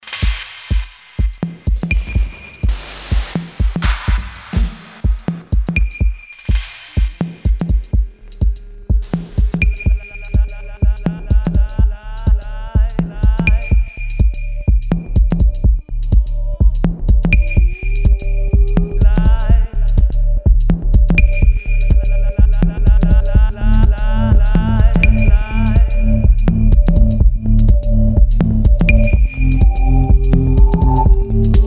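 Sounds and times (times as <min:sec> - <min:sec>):
micro techno music: 0:00.1 - 0:31.6.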